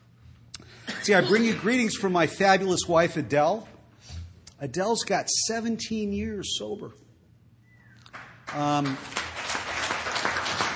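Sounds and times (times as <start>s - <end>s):
speech: 1.0s - 3.7s, 4.6s - 7.0s, 8.5s - 9.2s
audience clapping: 8.0s - 10.7s.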